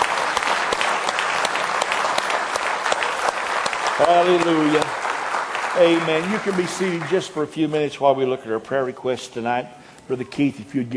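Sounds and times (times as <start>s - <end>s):
audience clapping hands in praise: 0.0s - 8.0s
speech: 4.0s - 5.0s, 5.8s - 10.9s.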